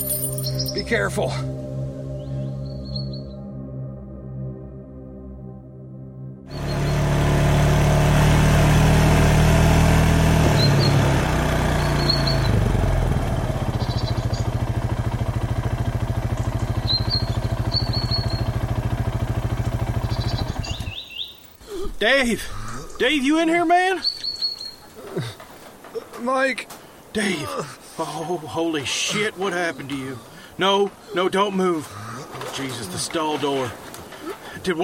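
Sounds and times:
birds chirping: 0.0s - 3.8s, 6.5s - 7.3s, 10.4s - 34.8s
speech: 0.8s - 1.6s, 22.1s - 24.1s, 26.2s - 32.0s, 32.6s - 33.8s, 34.6s - 34.8s
side-by-side utility vehicle engine running: 6.5s - 21.6s, 30.0s - 34.8s.

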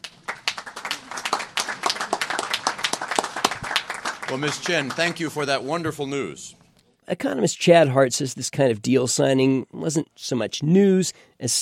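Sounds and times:
audience applauding: 0.0s - 6.2s
speech: 4.3s - 11.5s.

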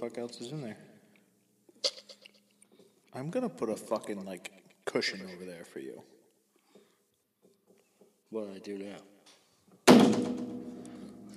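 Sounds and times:
speech: 0.0s - 0.9s, 3.1s - 6.2s, 8.3s - 9.1s
phone thudding onto a table: 9.9s - 10.7s.

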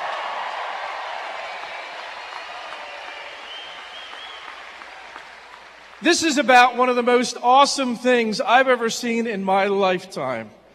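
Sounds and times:
audience applause for the band: 0.0s - 6.1s
speech: 6.0s - 10.6s.

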